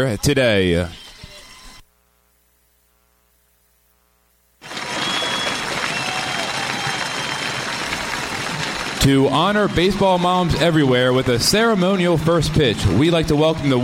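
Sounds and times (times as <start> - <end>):
speech: 0.0 - 1.0, 9.0 - 13.8
stadium crowd applause: 4.6 - 13.8.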